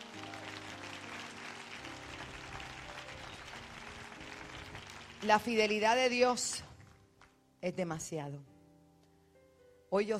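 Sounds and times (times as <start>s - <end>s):
audience clapping: 0.0s - 7.4s
speech: 5.2s - 6.7s, 7.6s - 8.5s, 9.9s - 10.1s.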